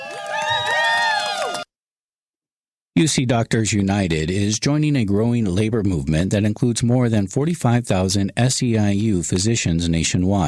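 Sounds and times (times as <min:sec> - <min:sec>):
crowd cheering and whooping: 0:00.0 - 0:01.8
speech: 0:03.0 - 0:10.4.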